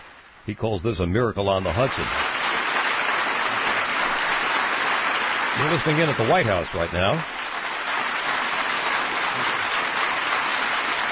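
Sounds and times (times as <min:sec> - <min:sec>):
speech: 0:00.5 - 0:02.3, 0:05.6 - 0:07.4
audience applause: 0:01.6 - 0:11.0.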